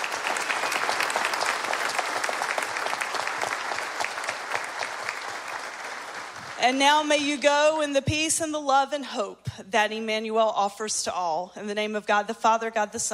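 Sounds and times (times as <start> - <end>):
audience applause welcoming a bishop at a Christmas church service: 0.0 - 6.7
speech: 6.6 - 13.1.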